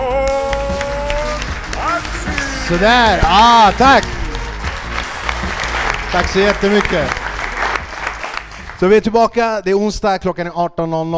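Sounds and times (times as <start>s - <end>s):
audience applause: 0.2s - 9.0s
speech: 2.7s - 4.2s, 6.1s - 7.2s, 8.8s - 11.1s.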